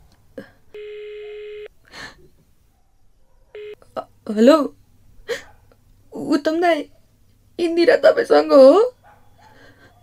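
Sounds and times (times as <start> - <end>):
faint low noise: 0.0 - 10.0
telephone tone while placing a call: 0.8 - 1.7, 3.6 - 3.8
speech: 4.3 - 4.8, 6.4 - 7.0, 7.6 - 8.9.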